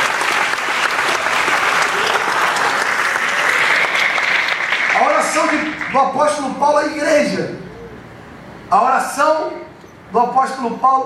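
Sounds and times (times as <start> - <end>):
church congregation clapping: 0.0 - 6.4
speech: 5.4 - 7.6, 8.7 - 11.0.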